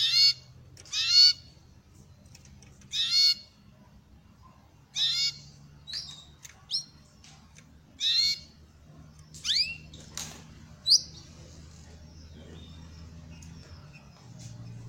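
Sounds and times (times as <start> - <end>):
canary harsh grating bursts and chirps: 0.0 - 1.5, 2.9 - 3.6, 4.9 - 7.0, 8.0 - 8.6, 9.4 - 10.0, 10.8 - 11.3.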